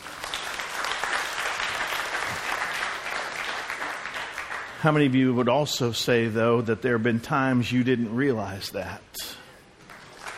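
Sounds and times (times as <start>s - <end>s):
audience hand clapping: 0.0s - 5.2s, 9.8s - 10.3s
speech: 4.8s - 9.4s.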